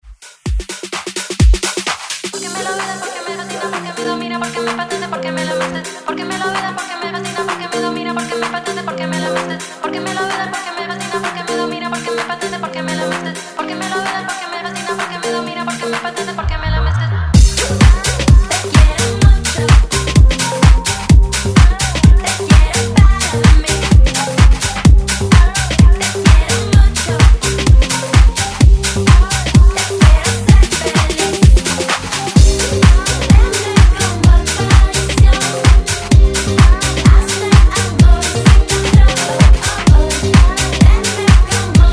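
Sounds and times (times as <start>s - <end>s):
dance music: 0.1s - 41.9s.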